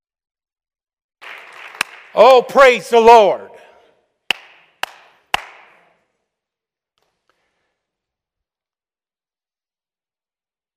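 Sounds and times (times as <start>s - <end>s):
audience clapping: 1.2s - 2.8s, 4.2s - 5.9s
speech: 2.2s - 3.6s.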